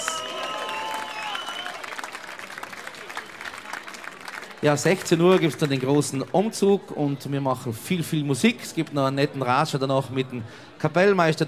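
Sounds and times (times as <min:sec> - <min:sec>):
audience applause: 0:00.0 - 0:06.2
speech: 0:04.6 - 0:11.4.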